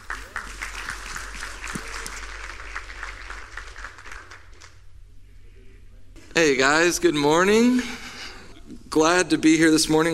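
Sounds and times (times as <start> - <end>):
audience applause welcoming a speaker: 0.0 - 4.9
speech: 6.4 - 8.0, 9.0 - 10.1.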